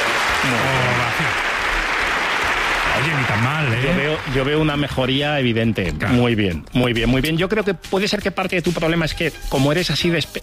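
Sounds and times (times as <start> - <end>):
audience ovation: 0.0 - 5.3
speech: 0.4 - 0.7, 3.3 - 10.4.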